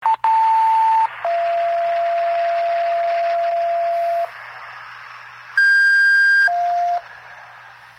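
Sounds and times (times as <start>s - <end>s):
dispatch tones: 0.0s - 4.4s, 5.6s - 7.1s.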